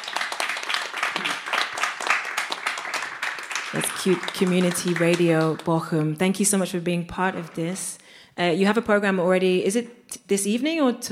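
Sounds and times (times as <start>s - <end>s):
audience applause: 0.0s - 5.8s
speech: 3.7s - 11.0s.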